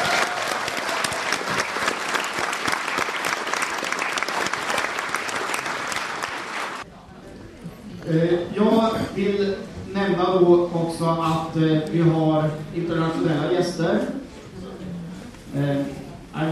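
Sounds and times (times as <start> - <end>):
audience applause: 0.0 - 6.8
faint murmur of voices: 6.8 - 16.5
speech: 9.2 - 14.1, 15.6 - 16.5.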